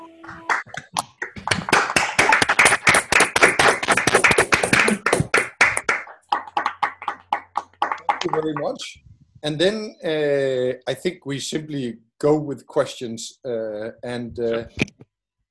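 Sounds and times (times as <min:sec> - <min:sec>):
participants on an online call clapping after a talk: 0:00.2 - 0:08.9
speech: 0:08.3 - 0:15.0.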